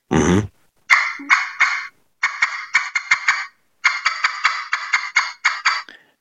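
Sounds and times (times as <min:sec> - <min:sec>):
aluminum turkey call playing raspy high yelps: 0:00.9 - 0:05.8.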